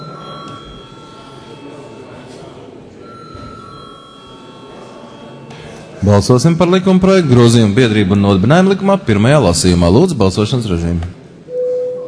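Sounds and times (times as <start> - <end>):
parliament chamber bell ringing to call members to vote: 0.0 - 2.2, 3.0 - 6.0
low murmur of people in the hall: 0.0 - 12.0
speech: 6.0 - 11.2.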